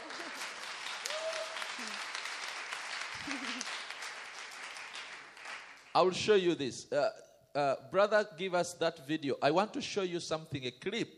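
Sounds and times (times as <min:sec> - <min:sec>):
audience applause: 0:00.0 - 0:05.9
speech: 0:06.0 - 0:11.1.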